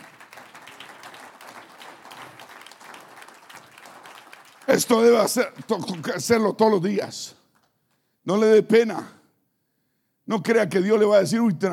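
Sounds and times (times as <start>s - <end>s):
audience applause: 0.0s - 6.5s
speech: 4.7s - 7.4s, 8.2s - 9.2s, 10.3s - 11.7s.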